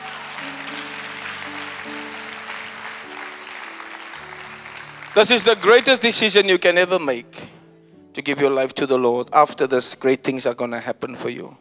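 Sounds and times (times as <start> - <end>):
crowd clapping: 0.0 - 6.6
sustained keyboard chords: 0.0 - 9.6
speech: 5.2 - 7.5, 8.2 - 11.5.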